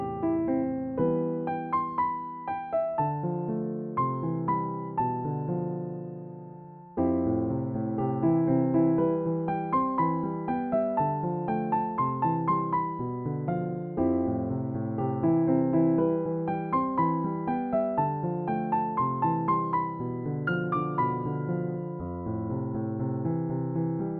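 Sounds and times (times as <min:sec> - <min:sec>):
piano music: 0:00.0 - 0:24.1.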